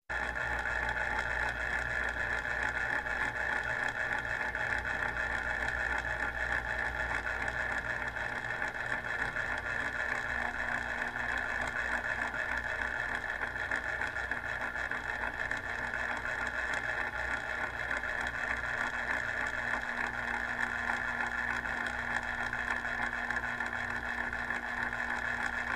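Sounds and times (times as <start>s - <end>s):
old electric clock: 0.1s - 25.7s.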